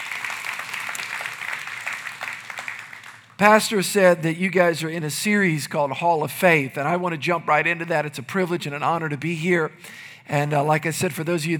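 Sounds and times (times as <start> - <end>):
audience clapping: 0.0 - 3.6
speech: 3.4 - 11.5.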